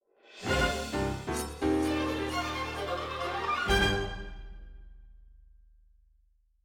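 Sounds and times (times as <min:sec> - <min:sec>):
field battle music outro: 0:00.4 - 0:04.8.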